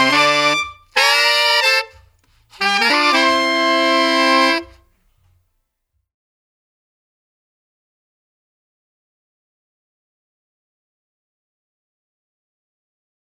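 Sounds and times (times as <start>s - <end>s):
dry horn section playing: 0.0s - 4.9s.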